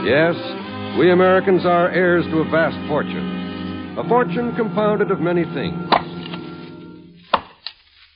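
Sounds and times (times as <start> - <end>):
speech: 0.0 - 3.4, 4.0 - 6.0
sustained musical tone: 0.0 - 7.2
axe biting into a log: 7.3 - 7.8.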